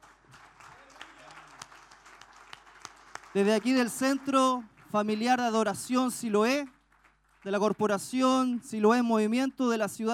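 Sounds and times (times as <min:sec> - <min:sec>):
audience applause: 0:00.0 - 0:05.4
speech: 0:03.3 - 0:06.8, 0:07.4 - 0:10.1.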